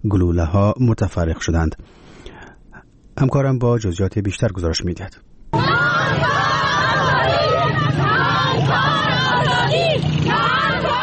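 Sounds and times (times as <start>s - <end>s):
speech: 0.0s - 2.2s, 3.2s - 5.3s
protesting women chanting a slogan in Kabul: 5.6s - 11.0s.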